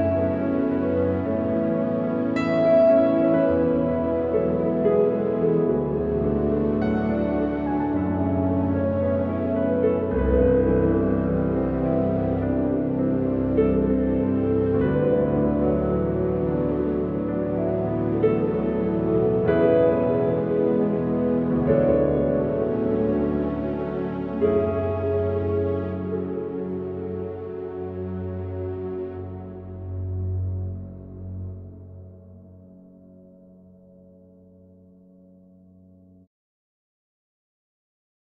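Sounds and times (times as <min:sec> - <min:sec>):
mystical relaxing piano music: 0:00.0 - 0:36.3.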